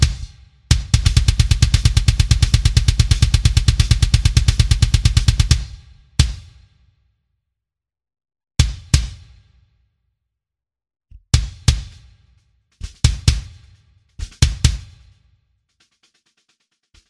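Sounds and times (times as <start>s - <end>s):
live kick drum with added punchy kick drum sample for more attack: 0.0s - 6.8s, 8.6s - 9.6s, 11.1s - 15.3s.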